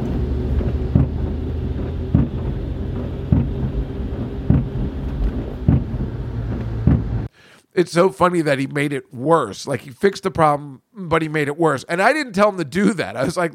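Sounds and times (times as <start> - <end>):
new car windshield wiper hitting the bottom of its sweep: 0.0 - 7.3
road and engine rumble while driving: 0.0 - 7.3
speech: 7.8 - 13.5.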